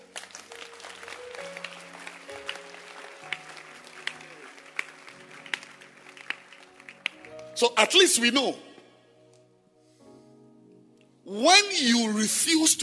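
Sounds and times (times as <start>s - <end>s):
audience clapping hands: 0.0s - 7.6s
speech: 7.6s - 8.7s, 11.3s - 12.8s.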